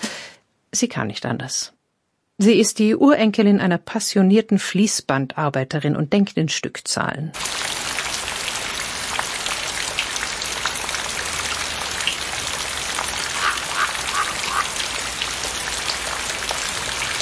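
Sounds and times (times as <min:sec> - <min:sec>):
speech: 0:00.7 - 0:01.8, 0:02.4 - 0:07.8
light drizzle rain falling: 0:07.4 - 0:17.2
duck-like quacks: 0:13.4 - 0:14.8.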